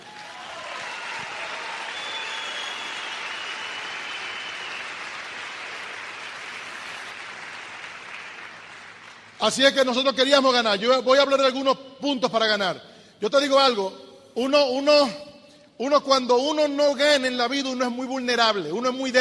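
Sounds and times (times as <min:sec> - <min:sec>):
crowd applauding: 0:00.0 - 0:09.4
speech: 0:09.4 - 0:15.2, 0:15.8 - 0:19.1.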